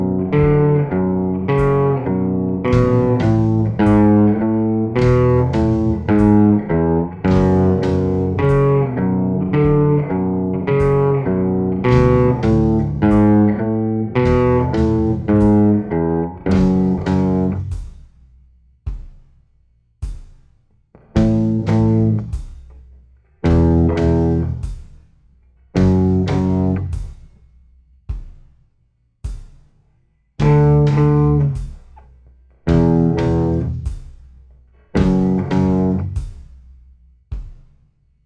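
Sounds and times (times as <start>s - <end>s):
slow guitar riff: 0.0s - 17.7s, 21.0s - 22.3s, 23.4s - 24.6s, 25.8s - 26.9s, 30.4s - 31.6s, 32.7s - 33.8s, 34.9s - 36.2s.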